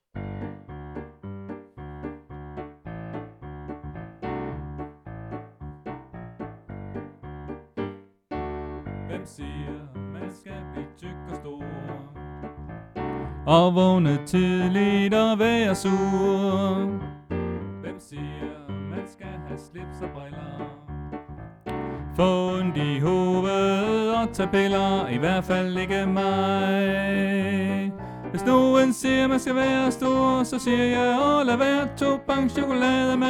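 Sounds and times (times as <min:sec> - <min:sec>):
tenor singing: 0:09.1 - 0:12.5, 0:13.2 - 0:17.2, 0:17.8 - 0:21.0, 0:21.7 - 0:33.2.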